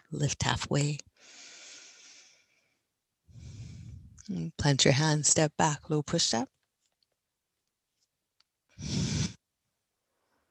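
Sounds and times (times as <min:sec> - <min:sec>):
speech: 0:00.1 - 0:01.4, 0:04.3 - 0:06.6, 0:08.8 - 0:09.1
breathing during a yoga vinyasa flow: 0:01.2 - 0:04.2, 0:08.8 - 0:09.4.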